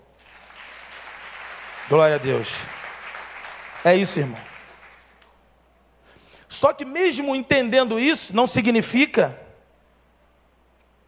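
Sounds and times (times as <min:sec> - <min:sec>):
audience applause: 0:00.2 - 0:05.2
speech: 0:01.9 - 0:02.8, 0:03.8 - 0:04.5, 0:06.5 - 0:09.4.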